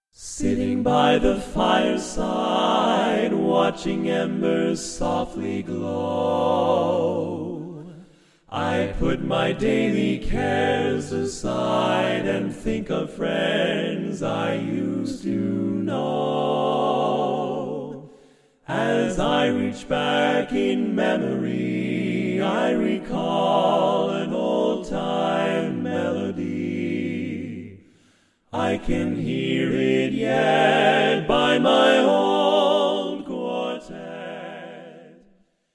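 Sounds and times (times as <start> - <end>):
vocal quartet harmonies: 0.2 - 35.7.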